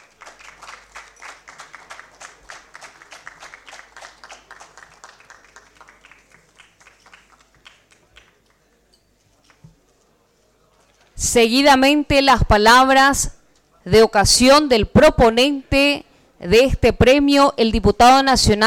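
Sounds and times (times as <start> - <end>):
audience applause: 0.0 - 8.8
speech: 11.2 - 18.6.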